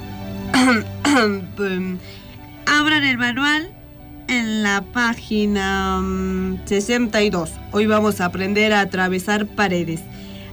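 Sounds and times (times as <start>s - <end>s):
throat clearing: 0.6s - 1.4s
speech: 0.6s - 10.3s.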